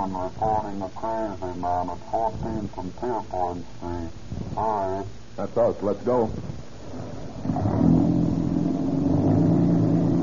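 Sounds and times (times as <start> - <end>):
speech: 0.0 - 6.6
old car engine revving and accelerating: 6.9 - 10.2.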